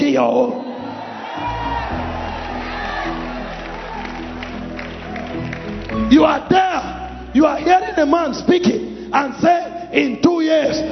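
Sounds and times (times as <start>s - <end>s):
speech: 0.1s - 0.7s, 6.1s - 10.8s
audience cheering: 0.5s - 6.5s
audience clapping: 1.2s - 6.5s.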